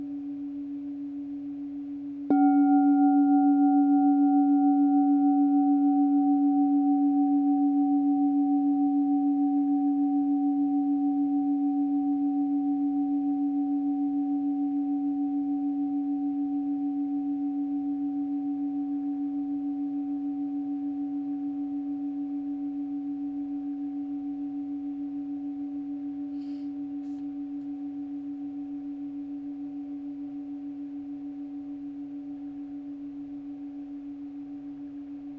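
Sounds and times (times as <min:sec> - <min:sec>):
chime: 0:02.3 - 0:30.1.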